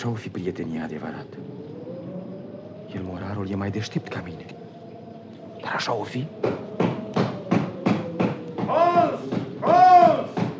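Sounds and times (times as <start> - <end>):
speech: 0.0 - 1.6, 2.9 - 4.6, 5.6 - 7.2
knocking on a door: 6.4 - 10.5.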